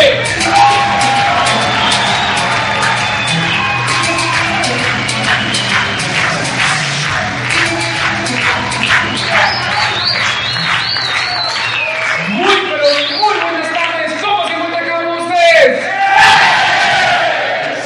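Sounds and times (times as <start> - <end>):
crowd cheering and whooping: 0.1 - 13.2, 15.9 - 17.7
audience applause: 0.6 - 14.7.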